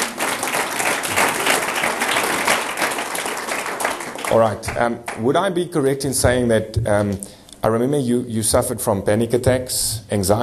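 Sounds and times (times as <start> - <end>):
audience clapping hands: 0.0 - 5.3
speech: 4.3 - 10.4.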